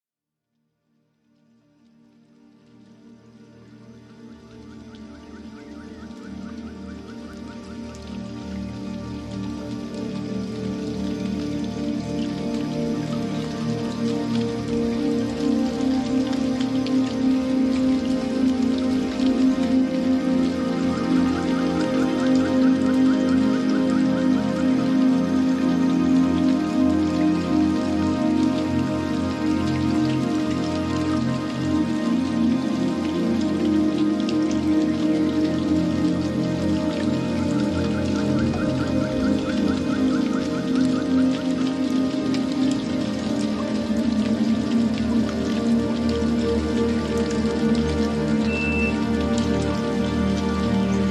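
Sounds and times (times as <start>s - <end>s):
Zen music: 1.2s - 51.0s
rain in a garden: 1.2s - 51.0s.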